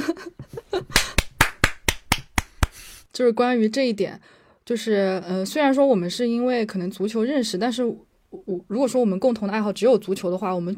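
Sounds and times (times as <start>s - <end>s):
clapping: 0.9s - 2.9s
speech: 3.2s - 10.7s.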